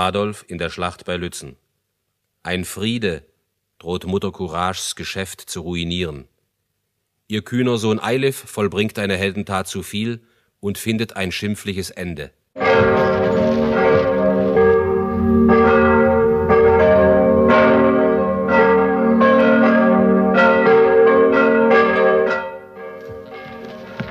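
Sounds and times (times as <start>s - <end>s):
speech: 0.0s - 1.6s, 2.4s - 6.3s, 7.3s - 13.0s
bells ringing: 12.6s - 24.0s.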